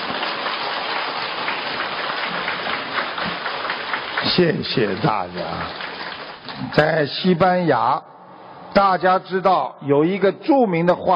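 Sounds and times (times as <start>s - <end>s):
audience applause: 0.0s - 6.8s
speech: 4.3s - 5.9s, 6.6s - 8.1s, 8.7s - 11.1s.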